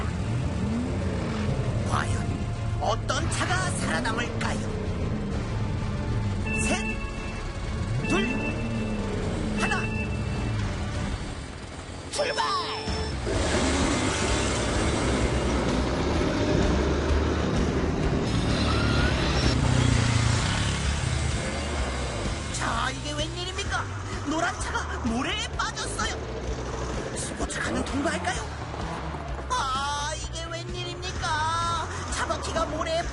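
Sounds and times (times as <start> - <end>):
tank rumbling past: 0.0 - 33.1
speech: 1.9 - 4.8.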